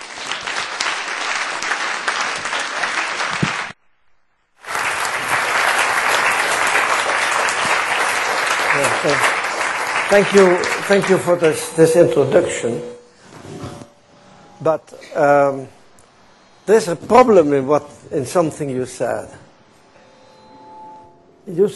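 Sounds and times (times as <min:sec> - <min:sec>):
audience applauding to welcome a speaker: 0:00.0 - 0:03.8, 0:04.6 - 0:12.8
speech: 0:10.1 - 0:13.0, 0:14.6 - 0:15.8, 0:16.7 - 0:19.4, 0:21.5 - 0:21.7.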